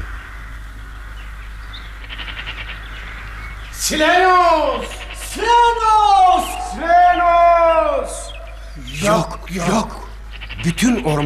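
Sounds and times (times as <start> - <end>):
forest hum: 0.0 - 11.2
bird chirps and twittering calls: 0.9 - 5.4, 7.9 - 11.2
speech: 3.8 - 6.0, 9.0 - 10.0, 10.6 - 11.2.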